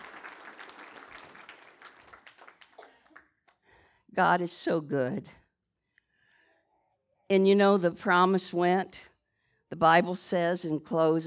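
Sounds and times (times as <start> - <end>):
church audience clapping: 0.0 - 3.6
speech: 4.2 - 5.4, 7.3 - 9.1, 9.7 - 11.2.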